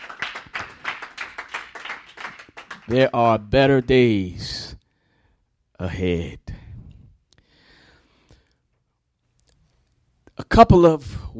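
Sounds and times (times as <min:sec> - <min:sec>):
church congregation clapping hands: 0:00.0 - 0:04.2
speech: 0:02.9 - 0:04.6, 0:05.8 - 0:06.4, 0:10.6 - 0:11.3.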